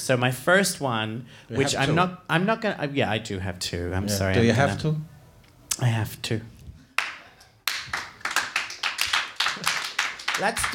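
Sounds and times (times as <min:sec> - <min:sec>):
speech: 0:00.0 - 0:05.1, 0:05.8 - 0:06.6, 0:10.4 - 0:10.7
slow clap: 0:06.9 - 0:10.7.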